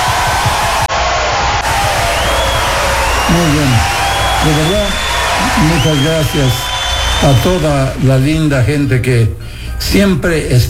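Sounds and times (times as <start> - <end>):
cheering and whoops: 0.0 - 8.0
crowd applause: 0.0 - 8.5
speech: 3.3 - 10.6.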